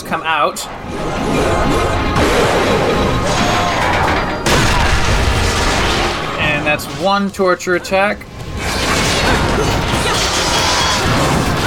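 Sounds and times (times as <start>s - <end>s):
speech: 0.1s - 3.1s, 6.7s - 8.3s
statues crashing apart in a video game: 2.0s - 7.2s, 8.4s - 11.6s.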